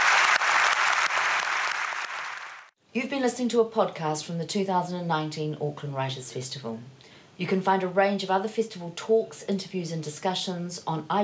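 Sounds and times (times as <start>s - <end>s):
audience applause: 0.0s - 2.7s
speech: 2.9s - 11.2s.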